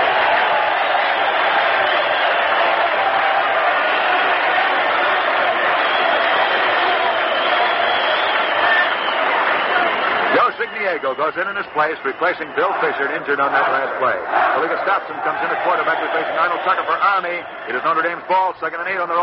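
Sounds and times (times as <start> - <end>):
stadium crowd applauding injured football player: 0.0 - 19.2
speech: 11.0 - 19.2.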